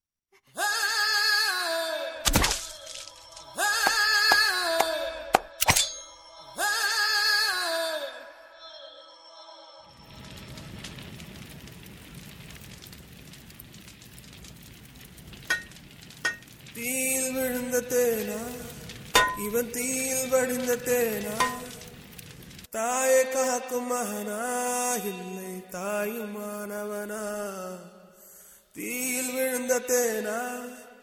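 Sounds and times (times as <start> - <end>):
a cappella singing: 0.5 - 2.3, 3.2 - 5.6, 6.2 - 10.0, 16.8 - 21.8, 22.7 - 28.2, 28.8 - 31.0.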